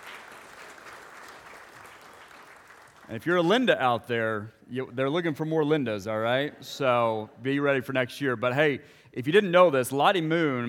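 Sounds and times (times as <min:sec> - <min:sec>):
audience applause at a gathering: 0:00.0 - 0:03.5
speech: 0:03.1 - 0:10.6.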